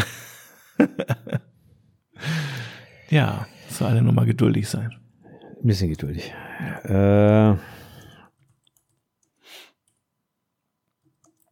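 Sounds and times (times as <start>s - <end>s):
laughter: 0.8s - 1.4s
speech: 3.1s - 5.0s, 5.6s - 7.8s
typing on a device: 8.3s - 10.1s, 11.0s - 11.5s.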